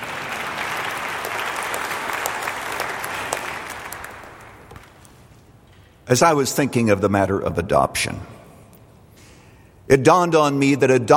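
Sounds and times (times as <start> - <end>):
audience applause: 0.0 - 5.0
speech: 6.1 - 8.4, 9.9 - 11.1.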